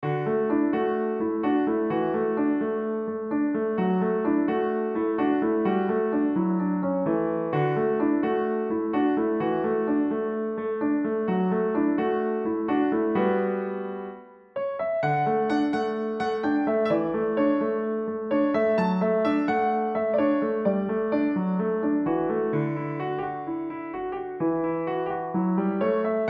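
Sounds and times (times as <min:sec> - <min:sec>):
solo piano: 0:00.0 - 0:26.2.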